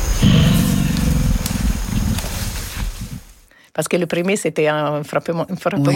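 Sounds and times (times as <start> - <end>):
deep animal grunt vocalization: 0.2 - 2.3
speech: 3.8 - 5.9.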